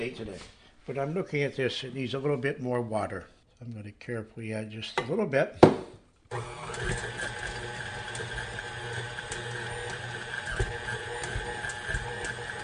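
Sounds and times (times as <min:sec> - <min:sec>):
speech: 0:00.0 - 0:07.3
stand mixer switch click: 0:06.3 - 0:12.6.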